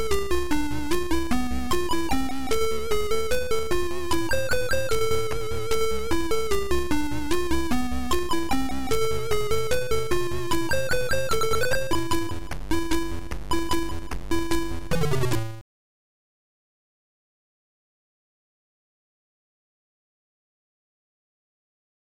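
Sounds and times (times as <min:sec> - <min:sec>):
chiptune music: 0:00.0 - 0:15.6.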